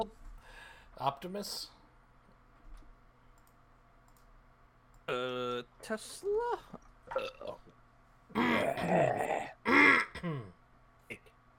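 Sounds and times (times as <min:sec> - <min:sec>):
speech: 0:01.0 - 0:01.8, 0:05.1 - 0:07.7, 0:08.3 - 0:11.2
burp: 0:07.1 - 0:07.6, 0:08.3 - 0:10.5.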